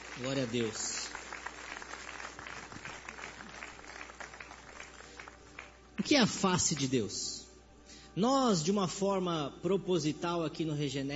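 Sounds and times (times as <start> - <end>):
audience clapping: 0.0 - 6.9
speech: 0.2 - 1.0, 6.0 - 7.4, 8.2 - 11.1.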